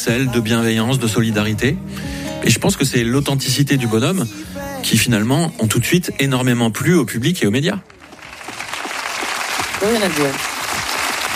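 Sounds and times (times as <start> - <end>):
speech: 0.0 - 8.0, 9.8 - 10.5
applause: 7.6 - 11.3.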